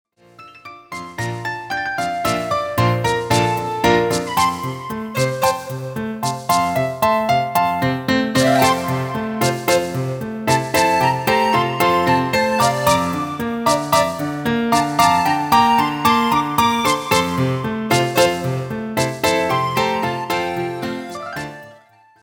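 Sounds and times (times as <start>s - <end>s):
ballet music for piques: 0.2s - 22.2s.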